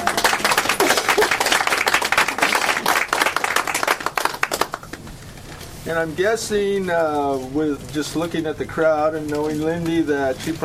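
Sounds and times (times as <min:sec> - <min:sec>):
crowd applauding: 0:00.0 - 0:05.0
speech: 0:05.9 - 0:10.6.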